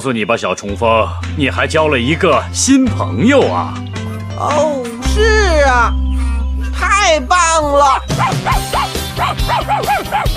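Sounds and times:
speech: 0:00.0 - 0:06.2, 0:06.8 - 0:10.3
steady low tone: 0:01.2 - 0:08.2
dog barking: 0:08.2 - 0:10.3.

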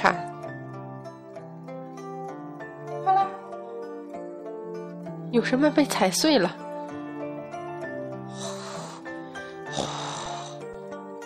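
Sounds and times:
speech: 0:05.3 - 0:06.6
strange creature panting heavily: 0:08.3 - 0:10.6.

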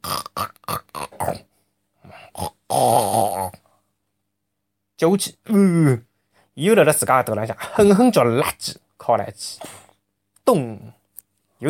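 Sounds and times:
voice imitating a piglet snoring: 0:00.0 - 0:01.5, 0:02.1 - 0:03.6
speech: 0:05.0 - 0:09.8, 0:10.5 - 0:11.0.

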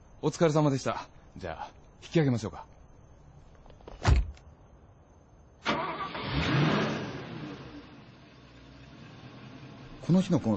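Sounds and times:
speech: 0:00.2 - 0:02.8, 0:10.1 - 0:10.5
car engine starting: 0:05.6 - 0:10.5.

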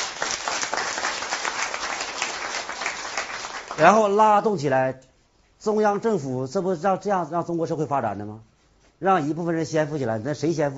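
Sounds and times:
audience applause: 0:00.0 - 0:03.9
speech: 0:03.8 - 0:10.7.

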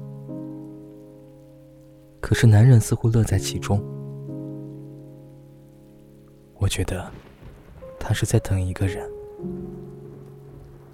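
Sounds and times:
rain falling: 0:00.0 - 0:10.9
speech: 0:02.2 - 0:04.0, 0:06.7 - 0:07.3, 0:08.0 - 0:09.7.

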